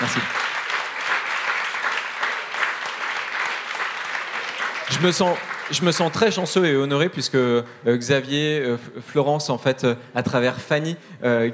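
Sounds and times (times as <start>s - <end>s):
audience applause: 0.0s - 6.7s
speech: 0.2s - 0.4s, 4.9s - 11.5s.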